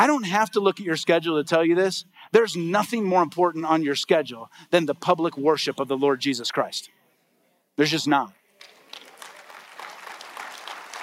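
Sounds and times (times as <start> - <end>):
speech: 0.0 - 7.0, 7.8 - 8.4
congregation's polite golf clap during a church service: 8.6 - 11.0.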